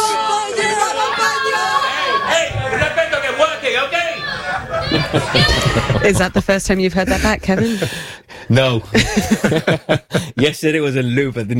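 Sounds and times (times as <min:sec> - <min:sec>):
crowd shouting and chanting at the Spanish border: 0:00.0 - 0:06.4
laughter: 0:01.9 - 0:10.6
speech: 0:05.1 - 0:11.5.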